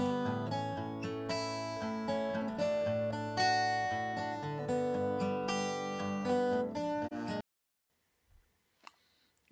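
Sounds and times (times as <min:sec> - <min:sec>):
acoustic guitar with waveshaper and EQ: 0:00.0 - 0:07.4.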